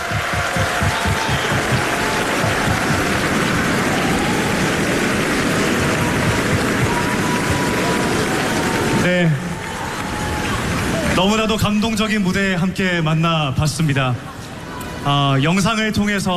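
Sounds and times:
standing ovation applause: 0.0s - 11.8s
speech: 9.2s - 9.4s, 11.2s - 14.3s, 15.0s - 16.3s.

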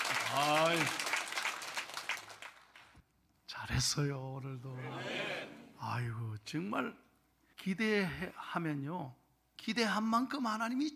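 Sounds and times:
audience applause: 0.0s - 2.9s
speech: 0.3s - 1.1s, 3.7s - 7.0s, 7.6s - 10.9s.

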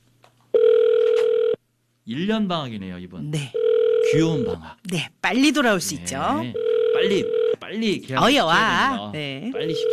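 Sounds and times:
telephone ringing tone of an outgoing call: 0.6s - 1.6s, 3.6s - 4.6s, 6.5s - 7.6s, 9.6s - 9.9s
speech: 2.1s - 9.9s.

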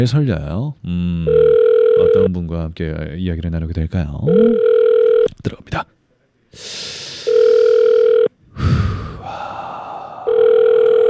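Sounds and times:
speech: 0.0s - 4.7s, 5.4s - 7.0s
telephone ringing tone on outgoing call: 1.3s - 2.3s, 4.3s - 5.3s, 7.3s - 8.3s, 10.3s - 11.0s.

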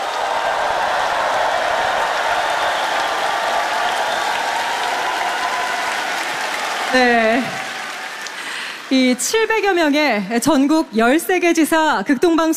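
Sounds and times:
audience applause: 0.0s - 10.0s
speech: 6.9s - 7.5s, 9.1s - 12.5s.

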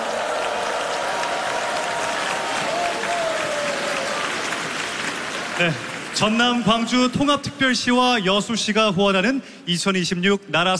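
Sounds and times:
audience applause for children's choir: 0.0s - 6.9s
speech: 5.6s - 10.7s.

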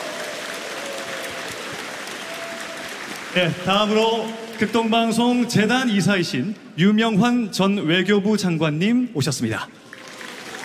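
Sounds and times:
audience applause: 0.0s - 5.9s, 9.8s - 10.6s
speech: 3.4s - 9.9s.

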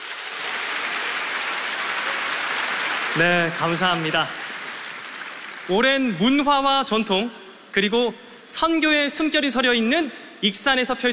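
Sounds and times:
audience applause: 0.0s - 6.4s
speech: 3.1s - 4.4s, 5.7s - 11.1s.

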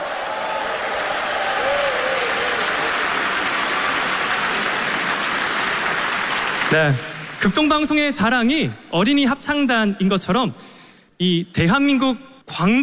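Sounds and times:
audience applause for children's choir: 0.0s - 7.8s
speech: 6.7s - 12.8s.

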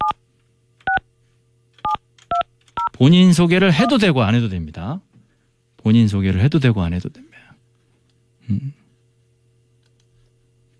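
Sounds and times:
dual-pitched phone keypad tones as a number is dialed: 1.8s - 2.9s
speech: 3.0s - 5.1s, 5.8s - 7.4s, 8.5s - 8.8s.

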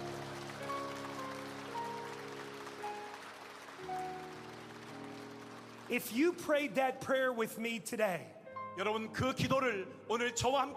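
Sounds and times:
audience applause: 0.0s - 6.6s
speech: 5.9s - 10.7s.

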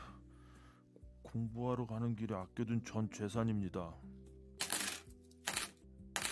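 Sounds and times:
speech: 1.2s - 4.2s
silver coins dropping and clinking: 4.6s - 6.3s.

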